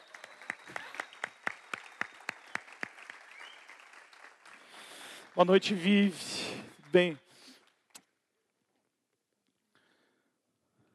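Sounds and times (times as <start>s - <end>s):
audience applause: 0.0s - 7.2s
speech: 5.4s - 7.2s.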